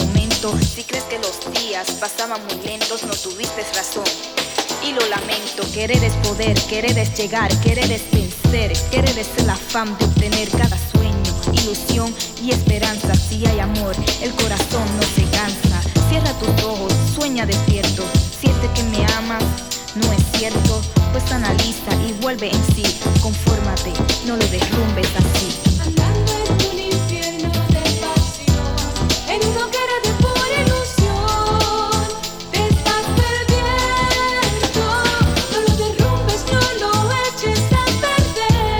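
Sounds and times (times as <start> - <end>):
Latin drum machine beats: 0.0 - 38.7.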